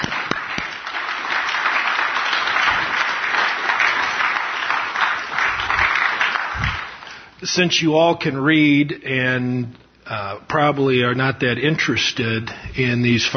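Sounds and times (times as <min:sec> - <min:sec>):
audience applause: 0:00.0 - 0:07.2
speech: 0:07.4 - 0:13.3.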